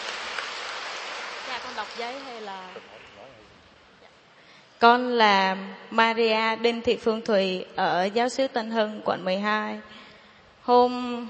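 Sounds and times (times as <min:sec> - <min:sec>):
audience applause: 0:00.0 - 0:03.3
speech: 0:01.6 - 0:03.6, 0:04.8 - 0:10.0, 0:10.7 - 0:11.2.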